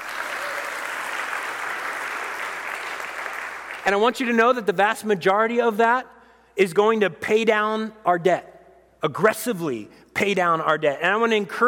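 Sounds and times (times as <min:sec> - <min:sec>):
audience applause: 0:00.0 - 0:03.9
speech: 0:03.9 - 0:11.6.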